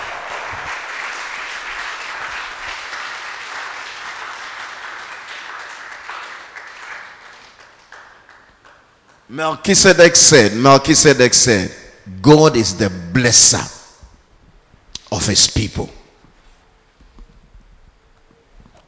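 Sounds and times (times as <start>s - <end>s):
audience clapping: 0.0s - 9.4s
speech: 9.3s - 13.8s, 15.2s - 16.0s.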